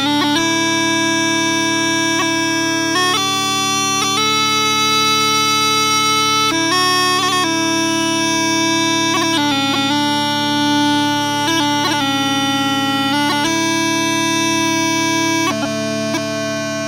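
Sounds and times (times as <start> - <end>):
small pipes playing wedding bagpipe music: 0.0 - 16.8.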